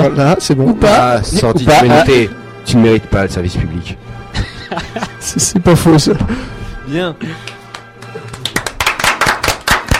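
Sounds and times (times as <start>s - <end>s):
speech: 0.0s - 7.6s
laughter: 4.3s - 6.4s
applause: 7.4s - 9.9s.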